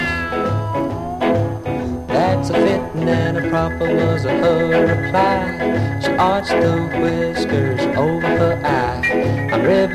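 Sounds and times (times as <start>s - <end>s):
cat meowing: 0.0s - 1.6s
speech: 2.4s - 9.9s.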